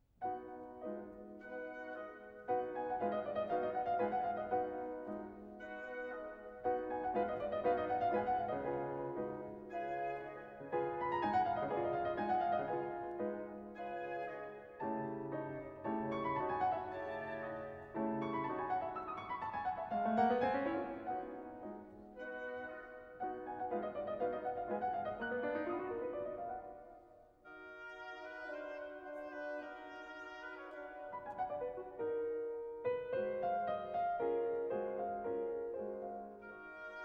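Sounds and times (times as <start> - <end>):
concerto for piano and orchestra: 0.0 - 37.0.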